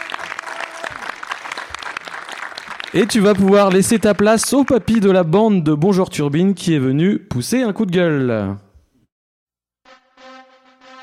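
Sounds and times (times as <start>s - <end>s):
audience applause: 0.0s - 5.0s
speech: 2.9s - 8.6s.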